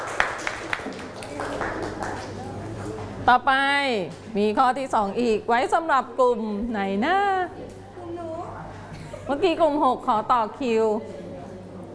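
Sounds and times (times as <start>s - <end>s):
students clapping: 0.0s - 2.9s
speech: 3.2s - 7.8s, 9.3s - 11.2s.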